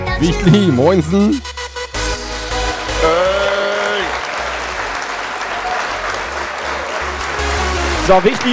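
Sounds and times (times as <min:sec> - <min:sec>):
speech: 0:00.2 - 0:01.5, 0:08.1 - 0:08.5
applause: 0:02.6 - 0:08.5.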